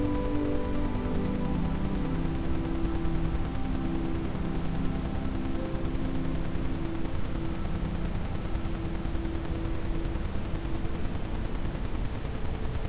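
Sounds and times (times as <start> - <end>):
ambient sound with Rife frequencies: 0.0 - 12.8.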